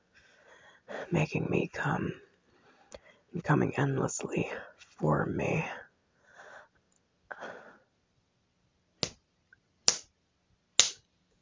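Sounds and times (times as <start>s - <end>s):
speech: 1.1s - 2.3s, 3.3s - 5.8s
slaps on skin: 9.0s - 9.2s, 9.9s - 10.1s, 10.8s - 11.0s.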